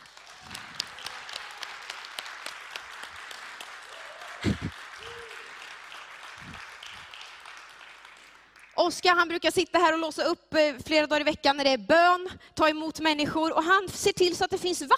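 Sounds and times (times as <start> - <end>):
audience applauding: 0.0 - 8.8
speech: 8.9 - 14.9.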